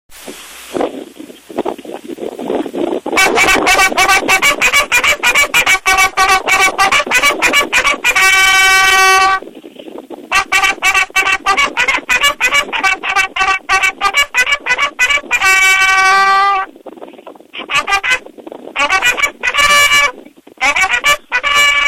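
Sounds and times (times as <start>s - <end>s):
bugle: 3.2s - 9.4s, 10.3s - 16.7s, 17.6s - 21.8s.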